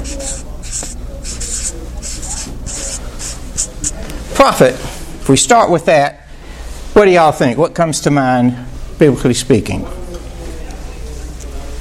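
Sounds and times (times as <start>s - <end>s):
marker or chalk strokes on a board: 0.0s - 4.0s
speech: 4.4s - 6.2s, 7.0s - 10.0s.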